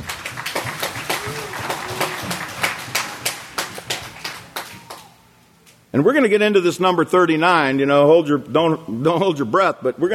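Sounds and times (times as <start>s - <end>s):
audience clapping: 0.0s - 5.2s
speech: 6.0s - 10.1s.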